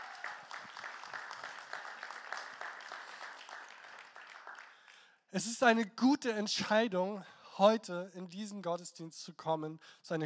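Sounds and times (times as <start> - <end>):
audience applause: 0.0 - 5.0
speech: 5.3 - 10.2.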